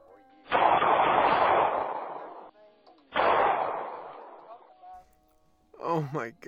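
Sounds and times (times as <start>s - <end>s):
gunshots: 0.5s - 2.5s, 3.2s - 4.7s
speech: 6.1s - 6.4s.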